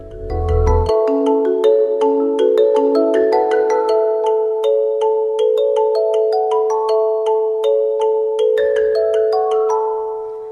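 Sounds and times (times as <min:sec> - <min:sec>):
soft low thumps: 0:00.0 - 0:00.9
steady held tone: 0:00.0 - 0:00.9
upbeat theme intro for a Christian song programme, bell-like plucked melody: 0:00.0 - 0:10.5.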